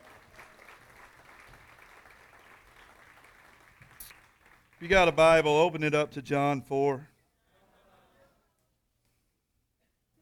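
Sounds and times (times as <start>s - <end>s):
crowd applauding in a large room: 0.0s - 5.9s
speech: 4.8s - 7.1s.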